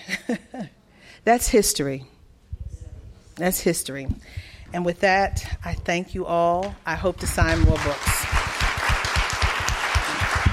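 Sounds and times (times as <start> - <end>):
speech: 0.3 - 2.2, 3.4 - 8.3
audience applause: 7.6 - 10.5.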